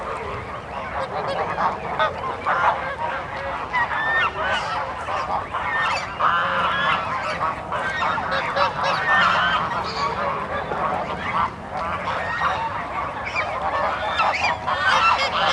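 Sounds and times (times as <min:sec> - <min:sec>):
geese honking: 0:00.0 - 0:15.5.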